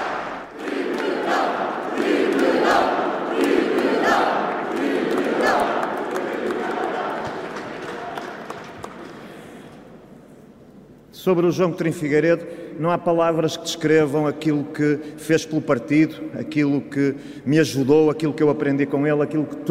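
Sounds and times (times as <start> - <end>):
large crowd applauding and cheering: 0.0 - 9.3
speech: 11.3 - 19.6.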